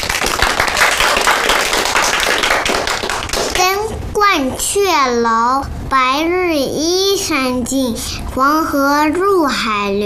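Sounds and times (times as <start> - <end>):
audience applause for a child: 0.0 - 3.6
speech: 4.4 - 10.0.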